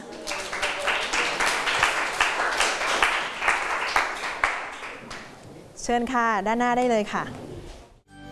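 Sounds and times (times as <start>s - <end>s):
classroom students clapping: 0.0s - 5.4s
speech: 5.9s - 7.4s.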